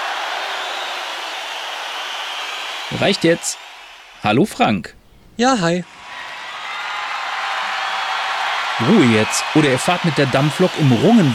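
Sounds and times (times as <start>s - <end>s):
applause: 0.0s - 4.3s, 5.7s - 11.3s
speech: 2.9s - 6.0s, 8.8s - 11.3s.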